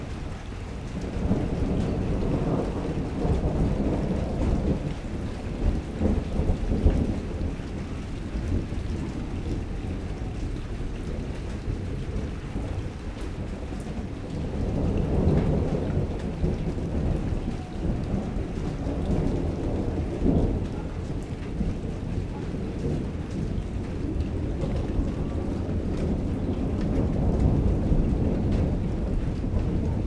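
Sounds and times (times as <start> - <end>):
rain in Vedia Buenas Aires Province Argentina: 0.0 - 30.0
thunder in Vedia Buenas Aires Province Argentina: 0.0 - 30.0.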